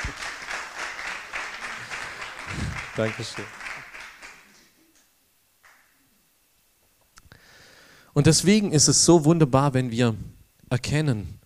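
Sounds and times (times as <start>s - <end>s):
warm audience applause: 0.0s - 4.8s, 5.6s - 5.9s
speech: 3.0s - 3.6s, 8.2s - 11.4s.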